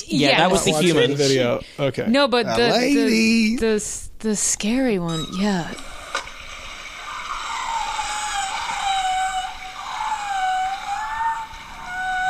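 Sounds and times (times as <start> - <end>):
speech: 0.1 - 5.9
whale song: 5.1 - 12.2.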